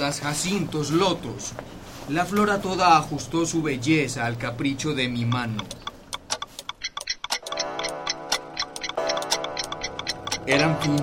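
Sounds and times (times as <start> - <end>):
speech: 0.0 - 5.8, 10.5 - 11.0
clock ticking: 4.3 - 11.0
steady ringing tone: 7.4 - 11.0.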